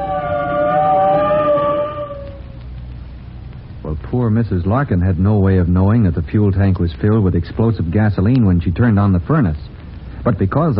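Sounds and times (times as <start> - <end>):
fire truck siren wailing: 0.0 - 2.7
speech: 4.2 - 10.7.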